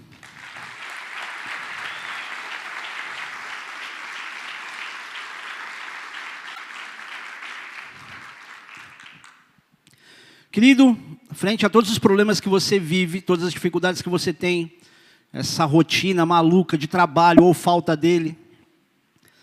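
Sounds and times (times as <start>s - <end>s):
crowd applauding: 0.0s - 9.5s
speech: 10.6s - 18.4s.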